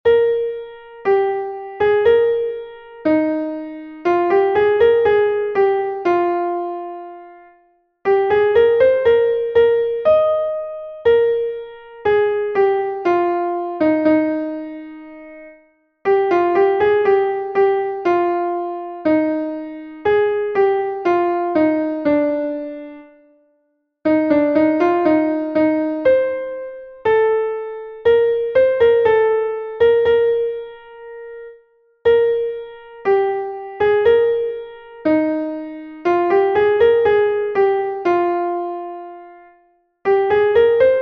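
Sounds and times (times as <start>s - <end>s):
piano: 0.0s - 41.0s.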